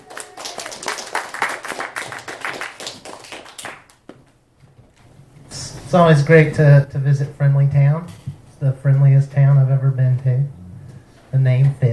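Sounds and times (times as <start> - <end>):
comedy show audience applause welcoming a guest: 0.0 - 4.0
speech: 5.9 - 10.6, 11.3 - 11.9.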